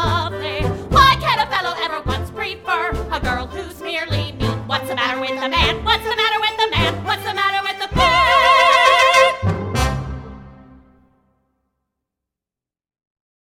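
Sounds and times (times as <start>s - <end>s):
person singing: 0.0s - 9.5s.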